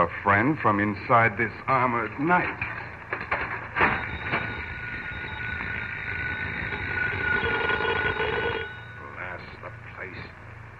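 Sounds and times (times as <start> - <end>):
speech: 0.0 - 2.7
telephone ringing: 2.7 - 9.4.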